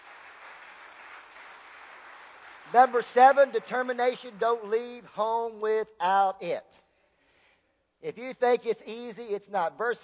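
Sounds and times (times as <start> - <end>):
congregation clapping in a church: 0.0 - 5.1
speech: 2.7 - 6.8, 8.0 - 10.0.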